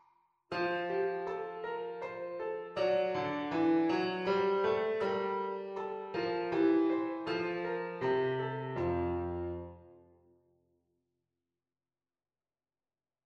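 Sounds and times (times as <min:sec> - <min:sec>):
two-voice melodic dictation in F major: 0:00.5 - 0:09.8.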